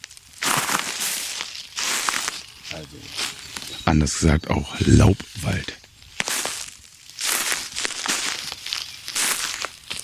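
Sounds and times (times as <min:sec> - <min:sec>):
footsteps crunching through dry beech leaves: 0:00.0 - 0:03.8, 0:06.0 - 0:10.0
speech: 0:02.7 - 0:05.8.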